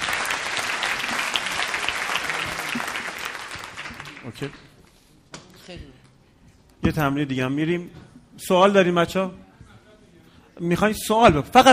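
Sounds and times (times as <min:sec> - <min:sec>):
audience applause: 0:00.0 - 0:04.6
speech: 0:04.2 - 0:04.7, 0:05.7 - 0:06.0, 0:06.8 - 0:09.4, 0:10.6 - 0:11.7.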